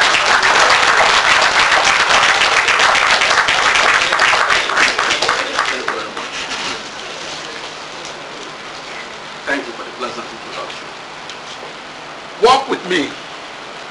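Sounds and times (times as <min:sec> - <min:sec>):
audience applause welcoming a speaker to the stage: 0:00.0 - 0:07.6.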